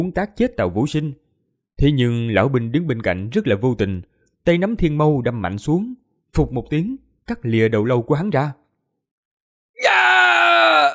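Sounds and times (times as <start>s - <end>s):
speech: 0.0s - 1.2s, 1.8s - 8.6s
man screaming in agony: 9.8s - 10.9s.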